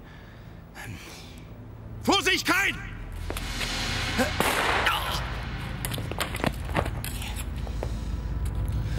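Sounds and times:
speech: 0.8s - 1.3s, 2.0s - 3.4s, 4.2s - 4.5s
footsteps: 3.1s - 4.6s, 5.3s - 8.9s
gunshot: 4.2s - 5.7s.

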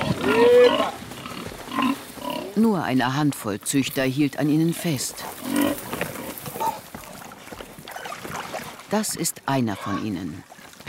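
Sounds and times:
pigs grunting and snuffling: 0.0s - 2.6s, 4.6s - 8.8s, 9.6s - 10.4s
speech: 2.6s - 5.8s, 8.9s - 10.8s.

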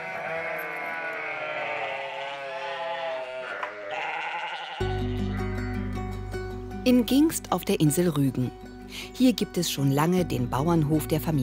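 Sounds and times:
flock of sheep and lambs bleating: 0.0s - 5.7s
speech: 6.8s - 11.4s.

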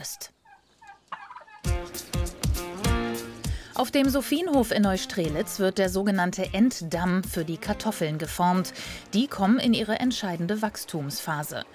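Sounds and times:
speech: 0.0s - 0.4s, 3.8s - 11.7s
turkeys gobbling: 0.0s - 2.1s.

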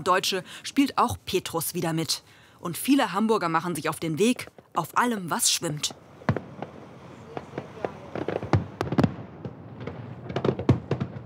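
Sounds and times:
speech: 0.0s - 6.0s
fireworks exploding: 4.2s - 11.2s.

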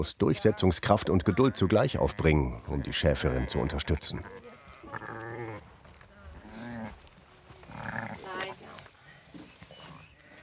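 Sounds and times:
speech: 0.0s - 4.5s
lamb bleating: 0.4s - 5.6s, 7.7s - 8.5s
breaths: 8.8s - 9.6s.

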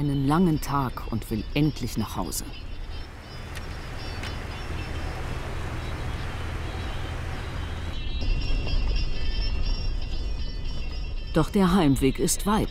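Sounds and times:
speech: 0.0s - 2.7s, 11.4s - 12.6s
four-wheel-drive car driving on rough ground: 2.5s - 11.1s.

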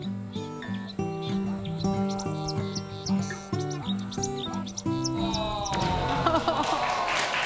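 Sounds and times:
marsh warbler singing: 0.0s - 6.4s
steady low tonal backdrop: 0.0s - 7.4s
laughter: 5.0s - 7.4s.

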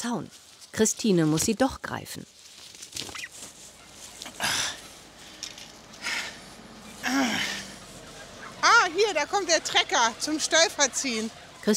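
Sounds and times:
speech: 0.0s - 2.4s, 9.0s - 11.7s
turkey gobbling: 3.0s - 5.1s, 6.0s - 11.7s.

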